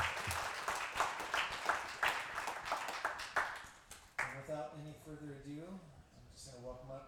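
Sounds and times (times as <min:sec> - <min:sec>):
audience applauding departing children and their teachers: 0:00.0 - 0:04.3
speech: 0:04.6 - 0:07.0.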